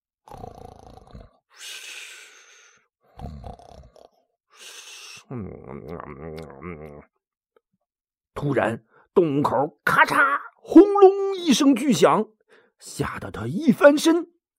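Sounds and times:
voice imitating loud snoring: 0.2s - 2.4s, 3.1s - 7.1s
speech: 5.3s - 7.2s, 8.4s - 14.3s.

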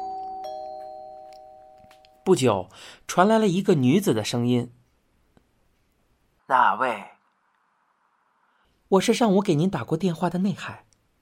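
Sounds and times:
intercom doorbell two-tone chime: 0.0s - 2.3s
speech: 2.3s - 4.8s, 6.5s - 7.1s, 8.9s - 10.9s.

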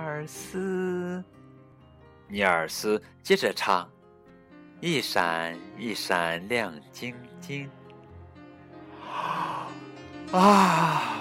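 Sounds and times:
speech: 0.2s - 1.4s, 2.3s - 4.0s, 4.8s - 7.8s, 10.3s - 11.1s
big yawn: 9.0s - 11.1s.

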